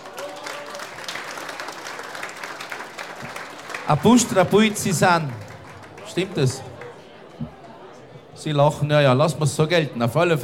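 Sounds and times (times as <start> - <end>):
audience applause: 0.0 - 8.0
speech: 3.9 - 5.5, 6.1 - 6.7, 8.4 - 10.4.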